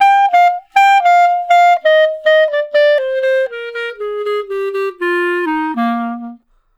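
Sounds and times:
clarinet solo: 0.0s - 6.6s.

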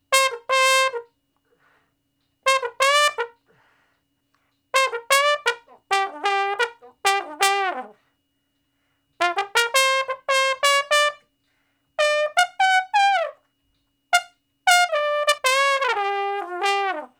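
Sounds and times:
trombone shuffle in G: 0.0s - 1.2s, 2.4s - 3.6s, 4.7s - 8.0s, 9.2s - 11.2s, 12.0s - 13.4s, 14.1s - 17.1s.

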